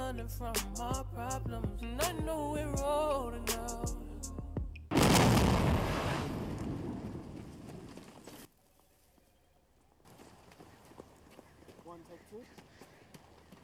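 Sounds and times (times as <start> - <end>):
speech: 0.1 - 4.1
explosion sound effect: 4.9 - 8.3
faint rustling and crackling: 6.1 - 13.6.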